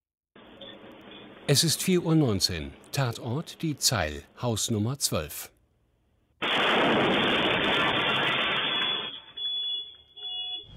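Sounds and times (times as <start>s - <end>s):
speech: 1.5s - 5.6s
explosion: 6.4s - 9.2s.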